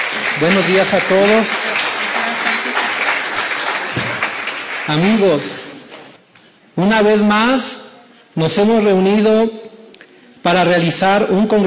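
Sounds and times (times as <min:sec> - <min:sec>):
audience applause: 0:00.0 - 0:06.2
speech: 0:00.4 - 0:01.7, 0:04.9 - 0:05.6, 0:06.8 - 0:07.8, 0:08.4 - 0:09.7, 0:10.4 - 0:11.6.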